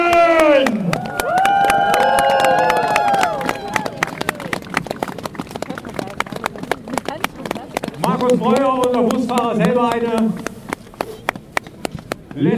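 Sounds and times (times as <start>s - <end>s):
crowd cheering: 0.0s - 10.4s
crowd applauding: 0.0s - 12.5s.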